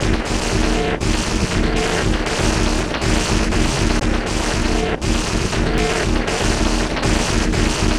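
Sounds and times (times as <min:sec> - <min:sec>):
music loop: 0:00.0 - 0:07.9.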